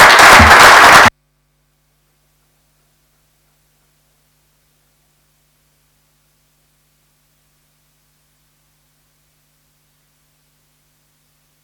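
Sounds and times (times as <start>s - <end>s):
dense crowd applause: 0.0s - 1.1s.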